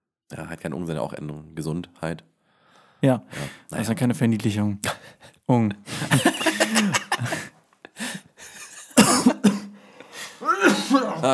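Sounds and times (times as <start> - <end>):
speech: 0.3 - 2.3, 3.0 - 7.4, 11.0 - 11.3
laughter: 5.9 - 9.6, 10.2 - 11.3
cough into the microphone: 6.1 - 7.5, 8.8 - 9.8, 10.4 - 11.3.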